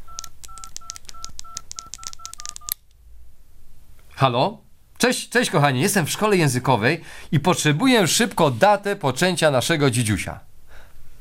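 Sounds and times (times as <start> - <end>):
touch-tone telephone beeps dialing a number: 0.0 - 2.8
hiss: 0.0 - 11.1
speech: 4.2 - 10.5.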